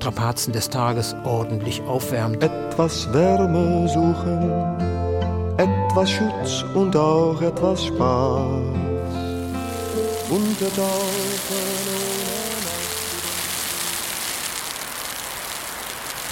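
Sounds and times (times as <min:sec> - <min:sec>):
speech: 0:00.0 - 0:05.0, 0:05.6 - 0:09.2, 0:10.3 - 0:11.2
drizzle mixed with wet snow pattering on surfaces: 0:09.2 - 0:16.3.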